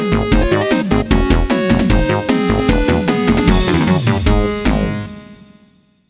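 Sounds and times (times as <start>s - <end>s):
game over music: 0.1s - 5.1s.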